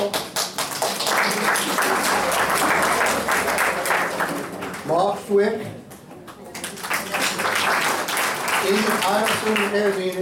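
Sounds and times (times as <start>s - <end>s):
audience applause: 0.0s - 4.9s, 6.6s - 10.1s
speech: 5.3s - 5.8s, 8.7s - 10.1s.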